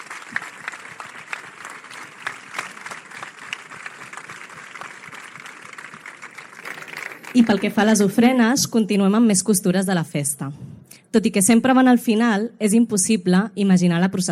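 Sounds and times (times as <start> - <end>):
audience applause: 0.0 - 8.2
speech: 7.4 - 14.3.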